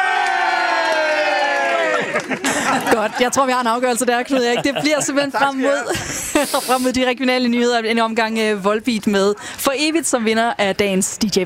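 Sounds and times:
studio audience cheering in a radio DJ battle: 0.0s - 3.0s
laughter: 1.6s - 6.9s
speech: 2.2s - 11.4s.

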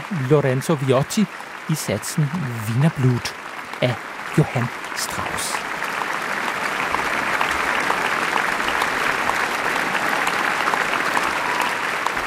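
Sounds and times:
concert audience applause: 0.0s - 12.2s
speech: 0.1s - 5.7s.

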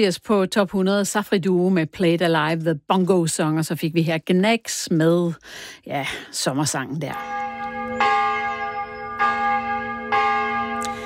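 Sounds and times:
speech: 0.0s - 8.2s
church bells ringing: 7.0s - 11.0s.

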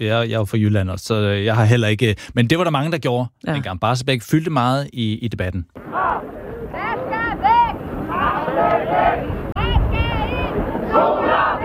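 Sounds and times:
speech: 0.0s - 5.9s
anti-nuclear protesters chanting: 5.8s - 11.6s
rumbling crowd noise: 5.8s - 11.6s.

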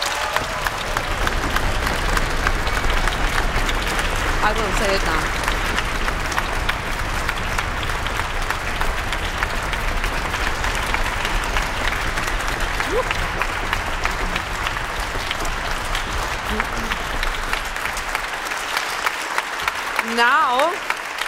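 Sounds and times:
loud applause from a large audience: 0.0s - 21.2s
speech: 4.5s - 5.4s.

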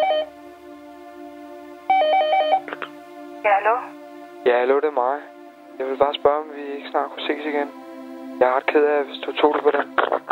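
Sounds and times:
telephone ringing at start of a song: 0.0s - 0.3s, 1.9s - 2.6s
speech: 3.6s - 7.8s, 8.4s - 10.1s.

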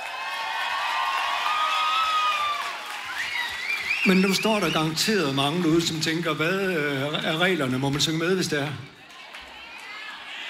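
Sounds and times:
audience clapping for an orchestra: 0.0s - 10.4s
crowd cheering for an orchestra: 0.0s - 10.4s
whistles and whoops from the audience: 1.4s - 5.0s
speech: 4.0s - 9.0s.

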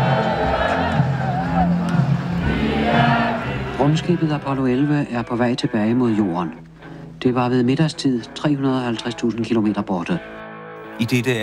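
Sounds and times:
crowd celebrating a football win shouting in Copenhagen: 0.0s - 4.3s
speech: 4.0s - 10.4s, 11.0s - 11.4s.

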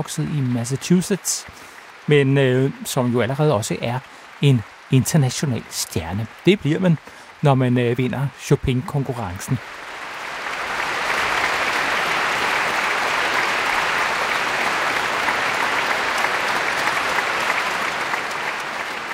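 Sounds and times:
speech: 0.0s - 9.8s
concert audience applause: 0.0s - 19.1s.

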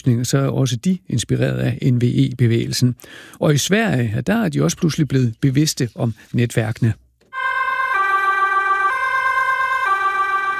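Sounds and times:
speech: 0.0s - 7.0s
emergency vehicle sirens: 7.3s - 10.5s.

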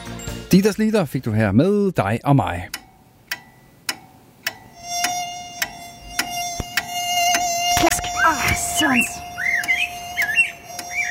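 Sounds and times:
speech: 0.5s - 2.8s, 8.9s - 9.3s
sharp ticks: 2.7s - 11.0s
bird chirps and squawks: 4.7s - 11.0s
mosquito buzzing on a summer night: 4.7s - 11.0s.

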